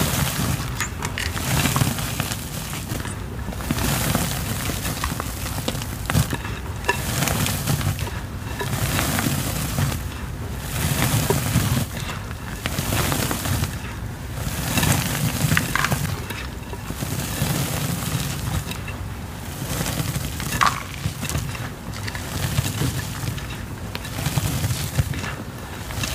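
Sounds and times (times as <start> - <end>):
gym chalk being crushed: 0.0 - 26.1.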